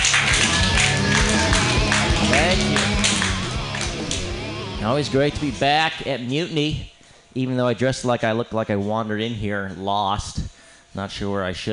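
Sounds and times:
audience clapping for comedian: 0:00.0 - 0:05.5
music: 0:00.0 - 0:06.0
speech: 0:04.9 - 0:10.4, 0:11.0 - 0:11.7.

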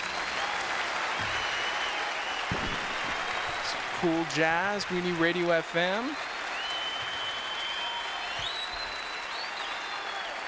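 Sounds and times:
shrill whistles from concert audience: 0:00.0 - 0:03.8, 0:06.1 - 0:10.4
audience applauding a jazz quartet at a concert: 0:00.0 - 0:10.4
speech: 0:04.0 - 0:06.3.

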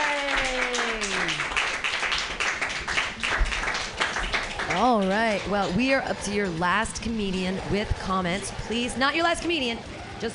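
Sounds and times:
audience clapping hands: 0:00.0 - 0:07.3
speech: 0:04.8 - 0:10.3.

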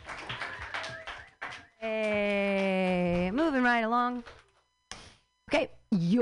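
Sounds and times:
audience clapping: 0:00.0 - 0:04.6
speech: 0:01.8 - 0:02.4, 0:03.7 - 0:04.4, 0:05.5 - 0:06.1.

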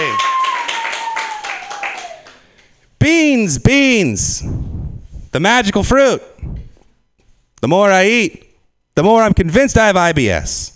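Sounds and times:
audience clapping: 0:00.0 - 0:02.8
speech: 0:03.0 - 0:04.6, 0:05.3 - 0:06.3, 0:07.6 - 0:08.4, 0:09.0 - 0:10.7.

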